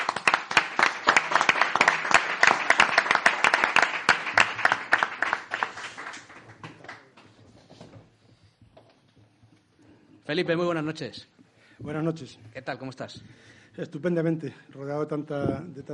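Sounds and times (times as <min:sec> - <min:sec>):
audience applause: 0:00.0 - 0:07.2
speech: 0:10.3 - 0:15.9.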